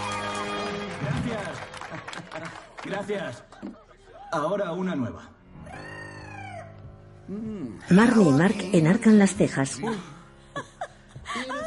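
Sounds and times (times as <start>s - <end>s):
scattered applause from a small group: 0.0s - 3.6s
laughter: 1.0s - 4.4s, 9.8s - 11.6s
speech: 2.4s - 5.4s, 7.3s - 10.2s.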